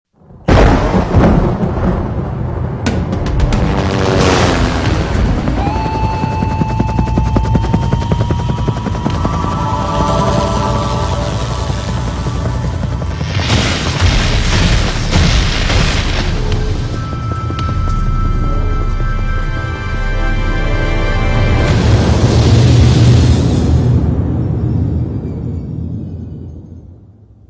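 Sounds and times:
Dolby Digital city sounds: 0.2 - 27.4.

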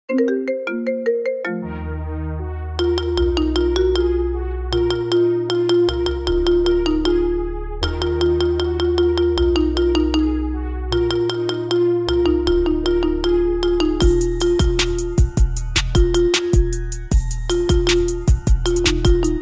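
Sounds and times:
marimba remix: 0.1 - 2.0, 2.8 - 19.3.

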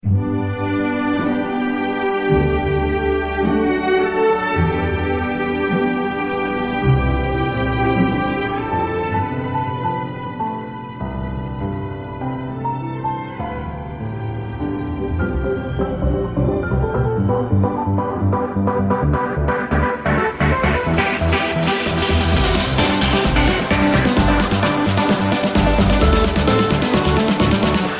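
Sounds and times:
cool instrumental mix: 0.0 - 27.9.

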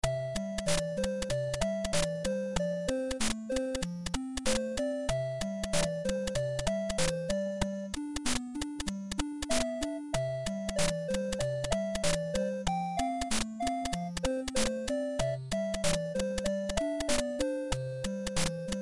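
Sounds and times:
8-bit music: 0.0 - 18.8.

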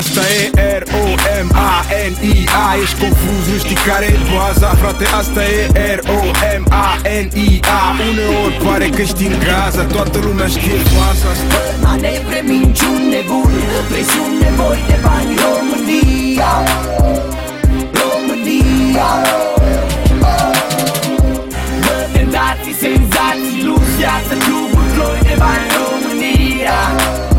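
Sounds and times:
Romanian hip hop music: 0.0 - 27.3.

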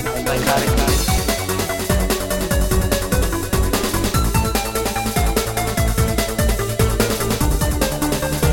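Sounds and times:
psychosis music beats: 0.1 - 8.5.

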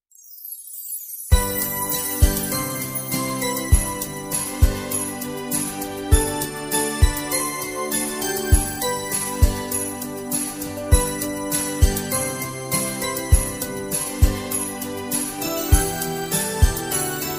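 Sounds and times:
New Year melody: 0.8 - 17.3.

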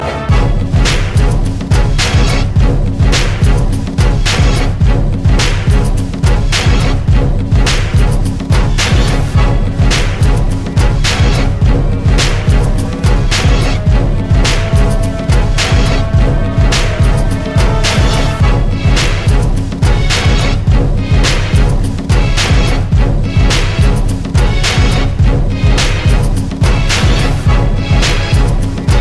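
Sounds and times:
instrumental anthem: 0.0 - 29.0.

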